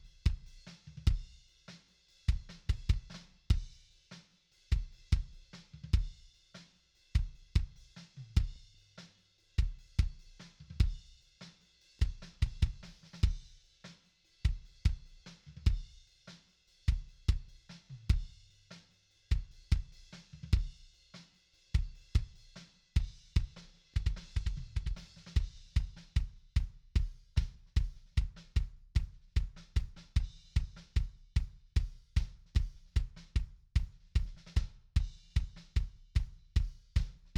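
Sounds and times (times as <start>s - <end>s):
kick drum: 0.0s - 1.4s, 2.3s - 3.8s, 4.7s - 6.3s, 7.2s - 8.7s, 9.6s - 11.1s, 12.0s - 13.5s, 14.5s - 16.0s, 16.9s - 18.4s, 19.3s - 20.8s, 21.8s - 22.4s, 23.0s - 37.3s.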